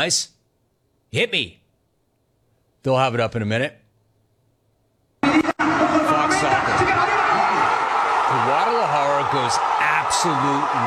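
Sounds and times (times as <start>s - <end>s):
speech: 0.0s - 0.3s, 1.1s - 1.6s, 2.8s - 3.8s, 9.3s - 10.8s
stadium crowd reaction from Guadalajara: 5.2s - 10.8s.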